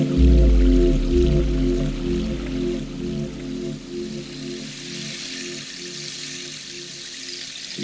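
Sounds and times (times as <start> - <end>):
gong bath: 0.2 - 4.5.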